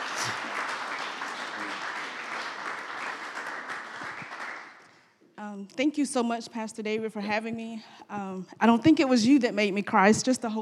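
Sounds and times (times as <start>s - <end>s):
audience applause: 0.0s - 4.9s
speech: 5.4s - 10.6s.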